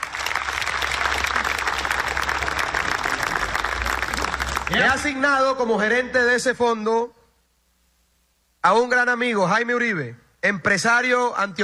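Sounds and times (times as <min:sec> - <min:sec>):
audience applause: 0:00.0 - 0:05.2
speech: 0:04.7 - 0:07.2, 0:08.6 - 0:11.6.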